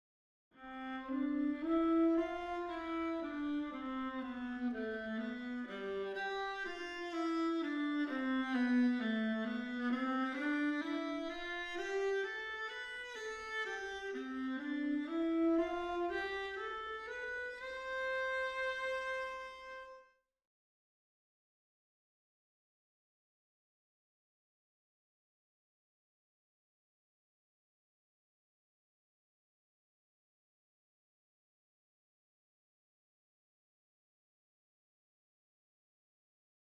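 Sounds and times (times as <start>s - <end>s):
viola: 0.6s - 20.0s.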